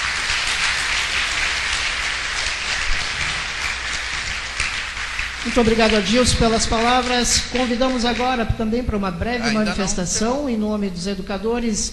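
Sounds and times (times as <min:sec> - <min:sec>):
audience applause: 0:00.0 - 0:08.2
speech: 0:05.4 - 0:11.9.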